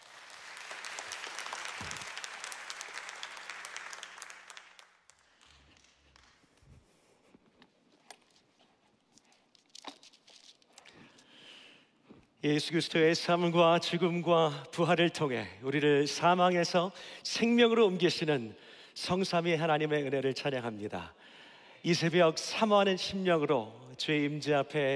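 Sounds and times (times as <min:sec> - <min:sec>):
audience applauding: 0:00.0 - 0:06.6
speech: 0:12.4 - 0:21.2, 0:21.8 - 0:24.9.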